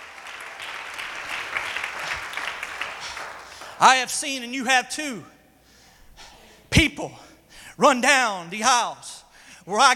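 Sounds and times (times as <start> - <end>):
audience clapping hands: 0.0 - 4.1
speech: 3.8 - 5.4, 6.8 - 7.2, 7.8 - 9.9.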